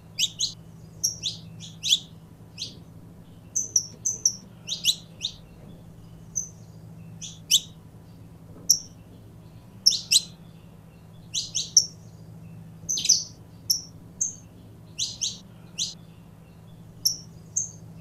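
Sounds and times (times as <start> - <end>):
Belgian canary singing: 0.0 - 17.9
quiet hum: 0.0 - 17.9.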